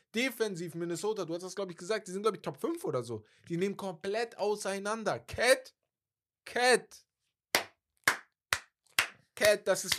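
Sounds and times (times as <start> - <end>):
speech: 0.1 - 5.8, 6.4 - 7.1, 9.4 - 9.9
hand claps: 7.5 - 9.9.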